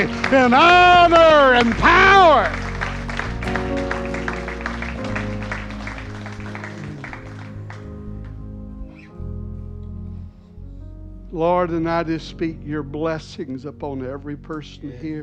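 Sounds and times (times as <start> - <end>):
speech: 0.0 - 2.6, 11.3 - 15.2
audience hand clapping: 0.0 - 9.1.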